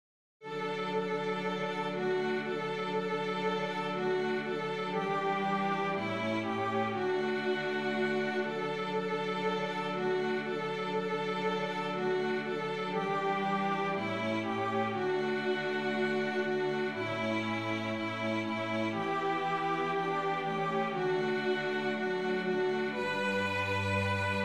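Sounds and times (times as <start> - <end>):
string bass: 0.5 - 24.4.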